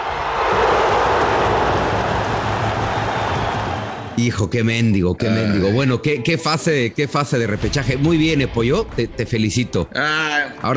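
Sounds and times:
huge stadium crowd cheering and applauding in a standing ovation: 0:00.0 - 0:04.2
speech: 0:04.2 - 0:10.7.

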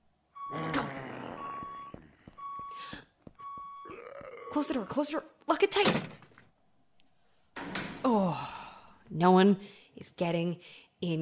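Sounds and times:
backup alarm beeping: 0:00.3 - 0:05.2
speech: 0:04.5 - 0:06.1, 0:09.2 - 0:11.2.

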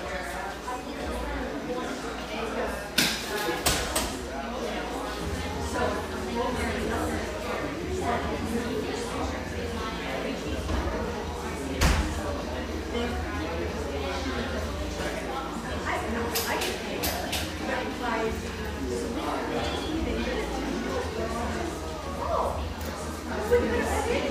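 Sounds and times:
overlapping chatter in a Portland, Oregon espresso shop: 0:00.0 - 0:24.2.

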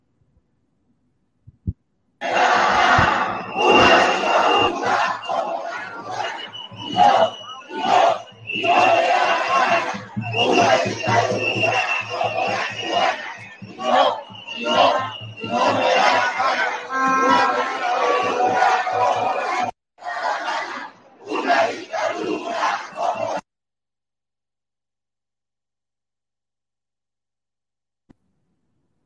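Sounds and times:
Colombian protest crowd chanting: 0:02.2 - 0:23.4.

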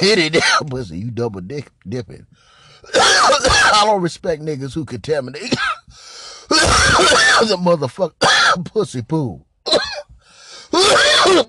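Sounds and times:
speech: 0:00.0 - 0:09.9, 0:10.9 - 0:11.4
person coughing: 0:00.3 - 0:00.6, 0:02.9 - 0:03.8, 0:05.4 - 0:05.9, 0:06.5 - 0:07.6, 0:08.2 - 0:08.6, 0:09.7 - 0:11.4.

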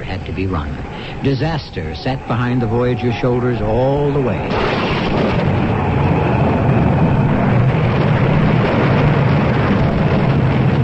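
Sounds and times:
speech: 0:00.1 - 0:05.5
lightning bolt striking a ship in storm: 0:04.4 - 0:10.8.

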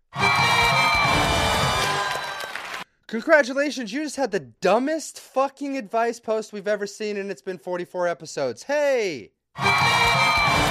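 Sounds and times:
cheering crowd used as a congratulations sound drop: 0:00.1 - 0:02.9, 0:09.6 - 0:10.6
speech: 0:03.1 - 0:10.2.

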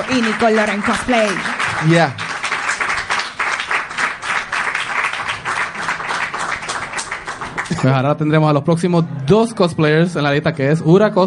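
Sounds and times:
speech: 0:00.0 - 0:02.2, 0:07.7 - 0:11.2
loud audience applause: 0:00.0 - 0:07.8.

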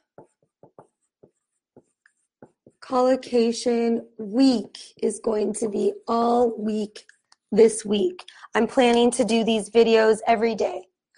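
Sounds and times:
scratchy handwriting strokes: 0:00.0 - 0:02.9
speech: 0:02.9 - 0:11.1.

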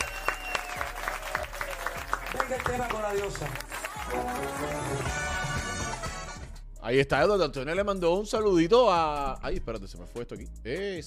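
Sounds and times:
audience applause: 0:00.0 - 0:06.2
speech: 0:02.5 - 0:05.3, 0:06.8 - 0:11.0.

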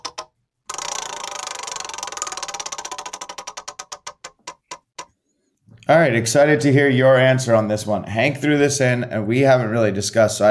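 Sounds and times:
spinning prize wheel: 0:00.0 - 0:04.7
speech: 0:05.9 - 0:10.4.

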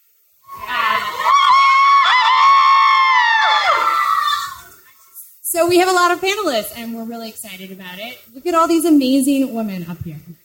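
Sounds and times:
audience cheering loudly: 0:00.4 - 0:04.7
speech: 0:05.7 - 0:10.4.

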